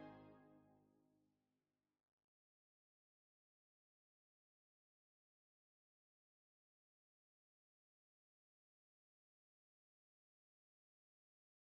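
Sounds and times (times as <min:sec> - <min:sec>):
brass anthem: 0:00.0 - 0:00.5.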